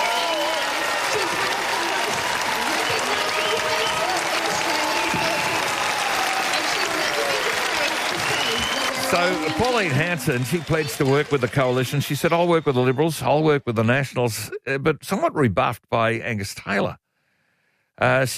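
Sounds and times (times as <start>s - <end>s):
scattered cheers and voices: 0.0s - 13.6s
standing ovation applause from large audience: 0.0s - 13.6s
speech: 9.2s - 17.0s, 18.0s - 18.3s.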